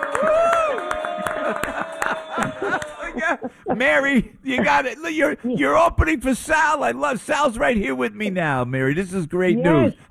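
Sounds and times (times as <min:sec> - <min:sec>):
round of applause: 0:00.0 - 0:03.5
laughter: 0:00.0 - 0:06.4
speech: 0:03.7 - 0:10.0.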